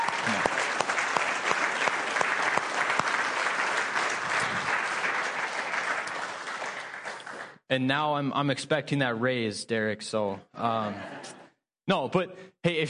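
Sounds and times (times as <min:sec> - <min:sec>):
audience applause: 0:00.0 - 0:07.6
speech: 0:07.7 - 0:12.8.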